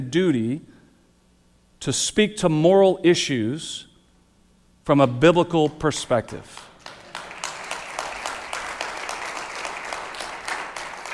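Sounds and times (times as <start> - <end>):
speech: 0.0 - 0.7, 1.8 - 3.9, 4.8 - 6.7
audience clapping: 6.3 - 11.1.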